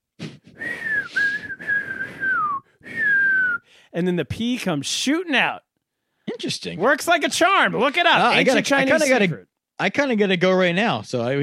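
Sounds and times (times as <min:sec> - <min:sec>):
person whistling: 0:00.2 - 0:03.7
speech: 0:04.0 - 0:05.7, 0:06.4 - 0:11.4.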